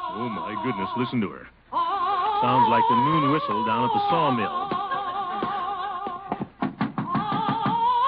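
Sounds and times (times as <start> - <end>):
speech: 0.1 - 1.5, 2.4 - 4.7
knocking on a door: 4.5 - 7.9.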